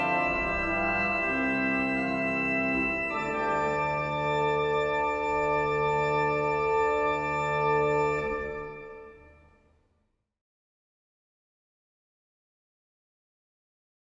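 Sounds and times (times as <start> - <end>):
chorale prelude music: 0.0 - 9.5.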